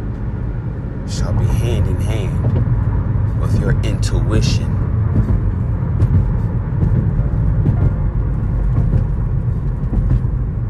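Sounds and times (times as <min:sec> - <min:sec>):
car engine rumbling as the car drives up a ramp on an early morning drive: 0:00.0 - 0:10.6
road roar: 0:00.0 - 0:10.6
speech: 0:01.1 - 0:02.8, 0:03.4 - 0:05.3.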